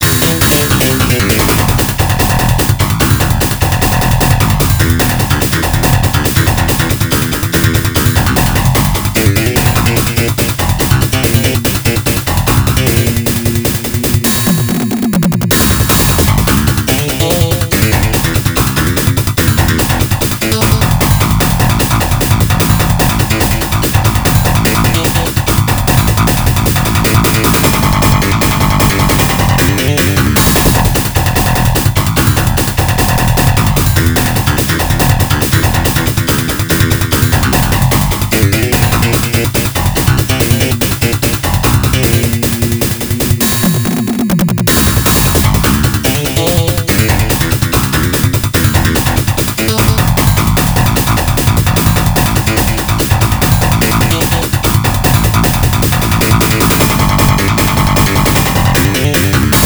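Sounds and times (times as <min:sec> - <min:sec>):
bass-heavy battle scene music: 0:00.0 - 0:59.6.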